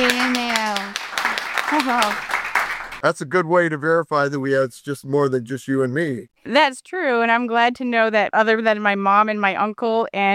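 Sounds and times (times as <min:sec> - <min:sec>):
studio audience clapping at a school campus taping: 0:00.0 - 0:03.0
speech: 0:01.8 - 0:02.3, 0:03.0 - 0:10.3.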